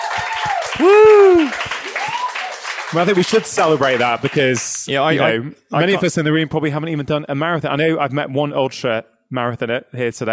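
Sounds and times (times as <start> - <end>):
round of applause: 0.0 - 4.9
speech: 0.2 - 1.6, 2.9 - 10.3.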